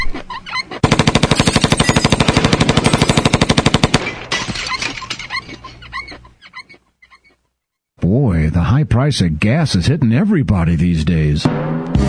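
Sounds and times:
dog yelping: 0.0s - 0.8s, 4.5s - 7.4s
automatic gunfire: 0.8s - 4.3s
speech: 9.0s - 11.9s.

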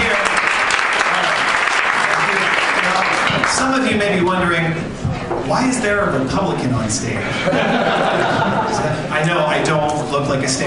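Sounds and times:
audience applause at Rooster T Feathers comedy club: 0.0s - 3.8s
speech: 4.3s - 10.6s
laughter: 7.2s - 9.4s.

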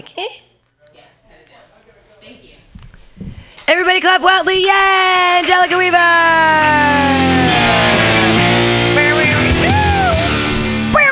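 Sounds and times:
speech: 0.0s - 0.4s, 3.7s - 7.2s
fake air horn sound effect: 6.7s - 11.0s.

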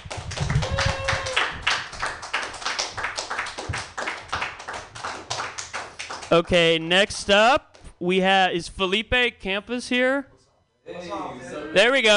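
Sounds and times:
audience clapping: 0.0s - 6.6s
speech: 6.3s - 10.3s, 10.9s - 12.1s.

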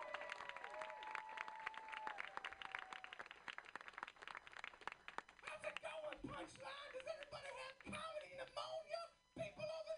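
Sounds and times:
audience applause and cheering: 0.0s - 5.6s
speech: 6.3s - 9.8s.

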